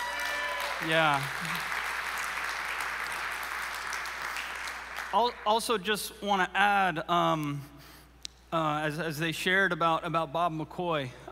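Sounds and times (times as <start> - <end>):
audience applause for worship team: 0.0 - 5.8
speech: 0.8 - 1.8, 5.1 - 7.7, 8.5 - 11.2.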